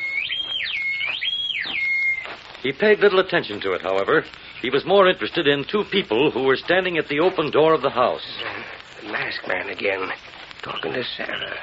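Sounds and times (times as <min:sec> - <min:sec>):
whistle in the night: 0:00.0 - 0:02.3
speech: 0:02.6 - 0:11.6.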